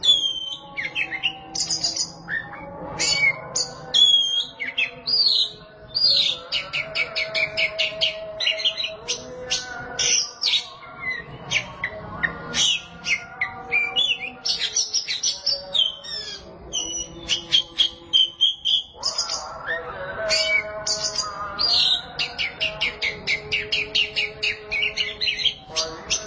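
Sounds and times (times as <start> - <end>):
Oriental magpie-robin singing: 0.0 - 26.2.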